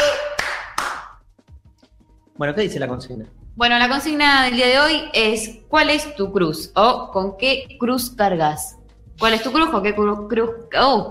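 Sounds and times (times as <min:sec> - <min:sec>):
clapping: 0:00.0 - 0:01.2
speech: 0:02.4 - 0:11.0.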